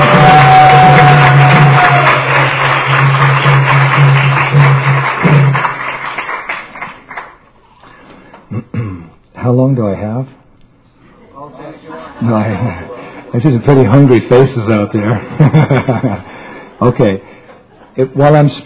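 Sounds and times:
audience applause: 0:00.0 - 0:07.4
speech: 0:09.5 - 0:10.4, 0:12.2 - 0:17.3, 0:18.0 - 0:18.6
laughter: 0:11.7 - 0:13.5, 0:15.0 - 0:18.2.

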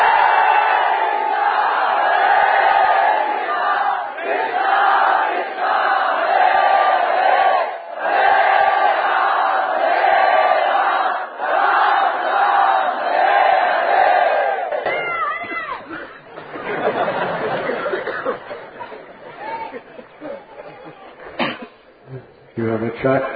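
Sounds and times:
crowd loudly chanting the holy name: 0:00.0 - 0:15.0
laughter: 0:14.7 - 0:22.3.

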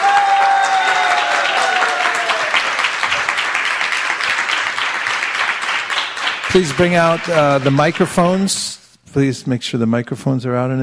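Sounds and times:
audience applause at a devotional gathering of Krishna devotees: 0:00.0 - 0:08.6
speech: 0:06.6 - 0:10.8.

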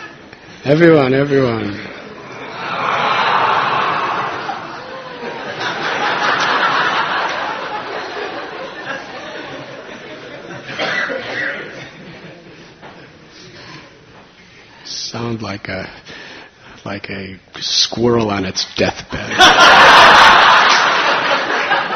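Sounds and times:
speech: 0:00.6 - 0:01.9, 0:15.5 - 0:16.1, 0:16.8 - 0:20.4
scattered laughter: 0:02.1 - 0:12.7, 0:19.1 - 0:21.9
crowd of people imitating a roar: 0:02.2 - 0:05.6.

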